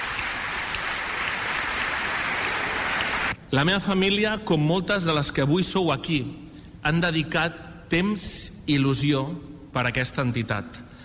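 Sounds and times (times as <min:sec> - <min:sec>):
crowd applauding: 0:00.0 - 0:03.4
speech: 0:03.5 - 0:10.8.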